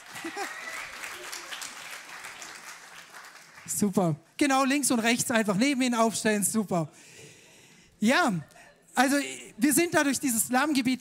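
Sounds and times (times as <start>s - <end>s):
audience applause: 0.0s - 3.7s
speech: 0.2s - 0.7s, 3.7s - 7.2s, 8.0s - 10.9s.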